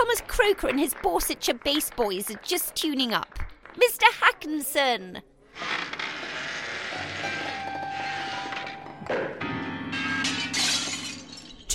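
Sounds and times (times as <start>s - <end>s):
speech: 0.1s - 5.8s, 7.2s - 7.7s, 9.1s - 9.4s
grand piano strings ringing: 7.0s - 11.7s
plate glass window shattering: 9.9s - 11.7s.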